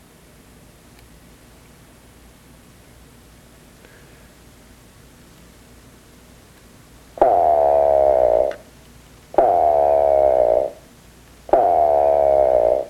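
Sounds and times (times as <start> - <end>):
nasal grunting bird calls: 7.2 - 8.6, 9.4 - 10.8, 11.5 - 12.8.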